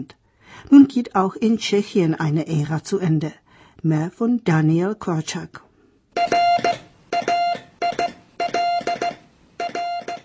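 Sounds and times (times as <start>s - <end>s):
speech: 0.0s - 5.7s
telegraph transmitting messages: 6.2s - 10.2s.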